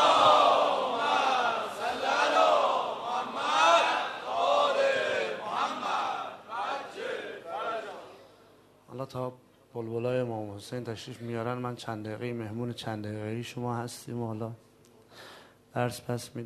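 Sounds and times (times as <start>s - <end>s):
audience loudly chanting salawat in unison: 0.0s - 8.2s
speech: 9.1s - 16.4s.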